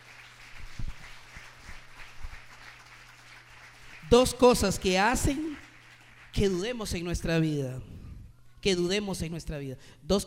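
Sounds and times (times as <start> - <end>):
audience applause: 0.0 - 6.8
speech: 4.1 - 5.5, 6.4 - 7.9, 8.6 - 10.2.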